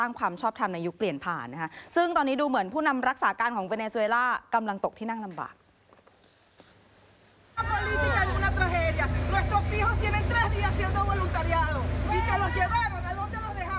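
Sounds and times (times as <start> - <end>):
speech: 0.0 - 5.6, 7.8 - 13.0
angry crowd shouting: 7.6 - 11.0, 11.8 - 13.6.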